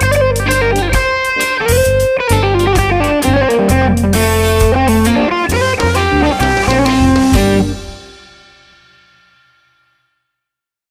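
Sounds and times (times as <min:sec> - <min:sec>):
reggae music: 0:00.0 - 0:08.5.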